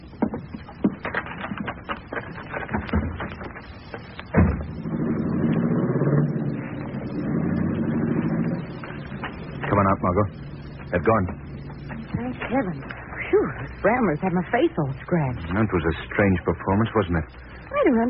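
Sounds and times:
clattering and knocks: 0:00.0 - 0:12.7
car engine rumbling as the car pulls away: 0:04.2 - 0:13.8
heavy car door slamming: 0:04.3 - 0:04.8
speech: 0:11.1 - 0:11.5, 0:12.5 - 0:13.0, 0:13.6 - 0:18.0.

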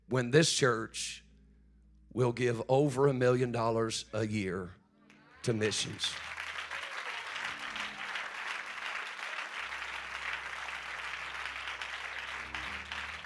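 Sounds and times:
low organ-like hum: 0:00.0 - 0:13.2
speech: 0:00.1 - 0:01.2, 0:02.1 - 0:04.8, 0:05.4 - 0:06.4
audience applauding: 0:05.4 - 0:13.2.

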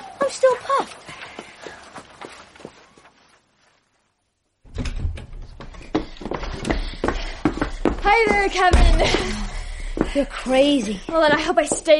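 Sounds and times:
running footsteps: 0:00.2 - 0:04.0, 0:04.8 - 0:11.9
speech: 0:00.3 - 0:01.1, 0:08.1 - 0:09.4, 0:10.1 - 0:11.9.

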